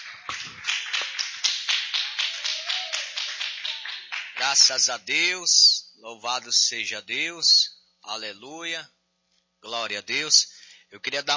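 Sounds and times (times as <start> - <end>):
audience clapping hands in a steady rhythmic beat: 0.0 - 5.0
speech: 0.3 - 0.8, 4.4 - 9.0, 9.6 - 11.3.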